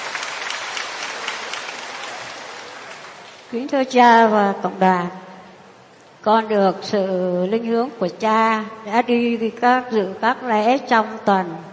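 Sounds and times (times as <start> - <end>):
audience applause: 0.0 - 3.6
speech: 3.5 - 5.2, 6.2 - 11.7.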